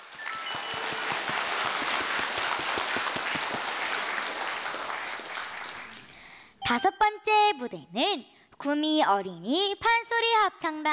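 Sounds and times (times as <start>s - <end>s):
audience applause: 0.0s - 6.2s
speech: 6.7s - 10.9s.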